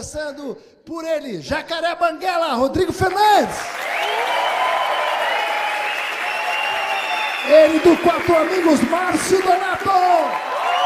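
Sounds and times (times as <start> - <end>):
speech: 0.0 - 4.4, 7.4 - 10.5
audience applause: 3.1 - 10.8.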